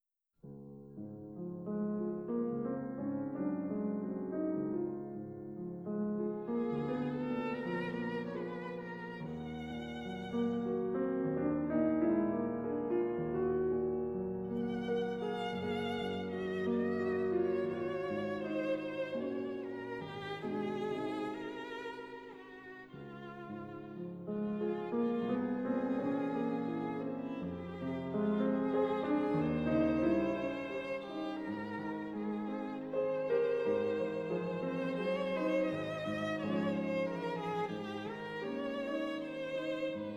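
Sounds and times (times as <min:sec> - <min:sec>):
violin and piano romances: 0:00.9 - 0:40.1.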